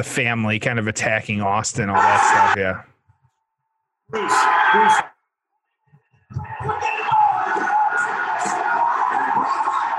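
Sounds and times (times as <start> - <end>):
speech: 0.0 - 2.9, 4.1 - 5.1
wrestling arena crowd cheering: 1.9 - 2.6, 4.1 - 5.2, 6.3 - 9.9.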